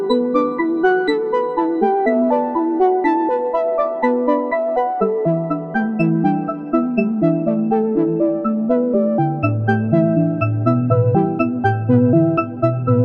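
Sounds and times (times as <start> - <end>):
constant tempo polyphonic sequence: 0.2 - 13.0.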